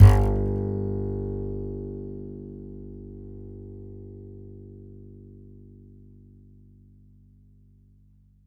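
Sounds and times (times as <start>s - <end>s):
E note on the E string of an upright bass: 0.0s - 1.6s.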